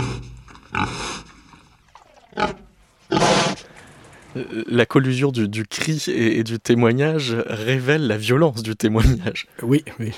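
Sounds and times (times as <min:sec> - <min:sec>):
animals grunting and roaring: 0:00.0 - 0:01.3, 0:01.9 - 0:03.7
speech: 0:04.4 - 0:10.1.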